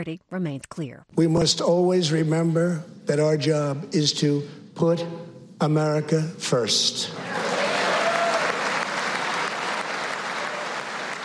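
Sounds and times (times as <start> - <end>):
speech: 0.0 - 7.4
crowd applause: 7.2 - 11.2.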